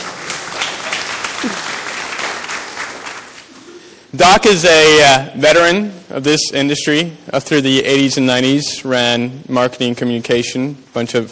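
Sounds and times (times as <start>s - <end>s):
audience applause: 0.0s - 3.5s
speech: 4.1s - 11.2s.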